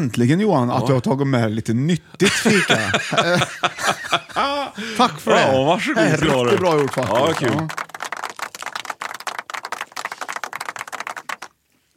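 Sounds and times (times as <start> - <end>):
speech: 0.0 - 7.9
laughter: 2.2 - 7.7
applause: 6.0 - 11.6.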